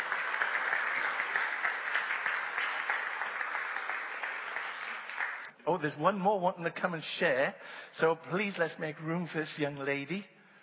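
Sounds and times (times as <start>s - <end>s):
audience applause: 0.0s - 5.5s
speech: 5.7s - 10.3s.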